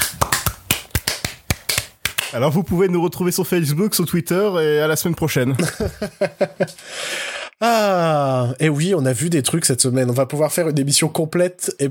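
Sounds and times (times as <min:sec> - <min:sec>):
hosts clapping: 0:00.0 - 0:02.4
speech: 0:02.3 - 0:11.8
laughter: 0:05.5 - 0:06.8.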